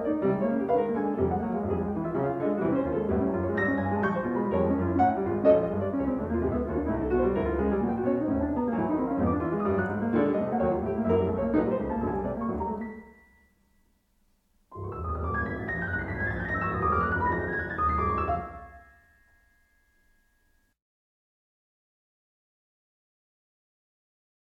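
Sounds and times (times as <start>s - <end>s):
two pianos playing etudes: 0.0s - 13.5s, 14.7s - 20.2s.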